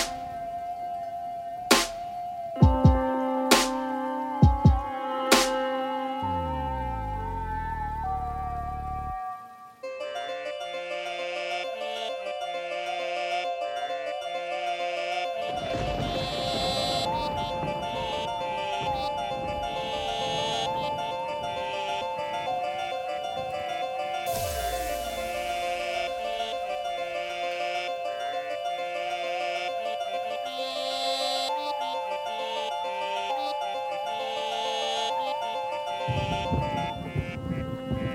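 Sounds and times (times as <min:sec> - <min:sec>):
emotional lofi beat: 0:00.0 - 0:12.5, 0:15.2 - 0:28.8, 0:35.1 - 0:38.1
rain atmosphere: 0:00.0 - 0:38.1.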